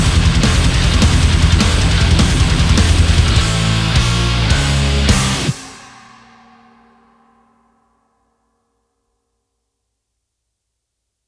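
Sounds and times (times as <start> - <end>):
high-gain guitar through a profiling amplifier: 0.0 - 7.2.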